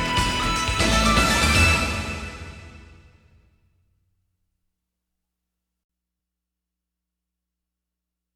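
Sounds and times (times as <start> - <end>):
arena rock music: 0.0 - 3.1.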